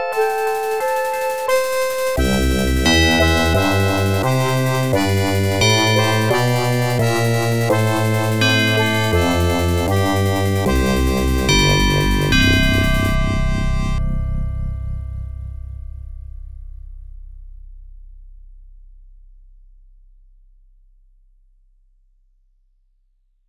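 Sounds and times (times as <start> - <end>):
Sound Blaster synthesized melody: 0.2 - 16.6.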